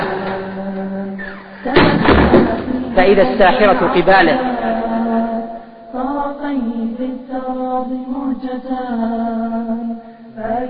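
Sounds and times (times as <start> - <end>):
door opening and shutting: 0.0 - 2.8
speech: 3.0 - 4.6, 6.5 - 10.6.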